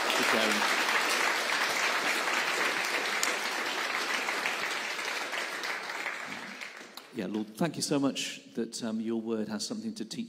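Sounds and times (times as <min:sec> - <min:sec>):
applause: 0:00.0 - 0:07.2
speech: 0:00.2 - 0:00.9, 0:07.2 - 0:10.2.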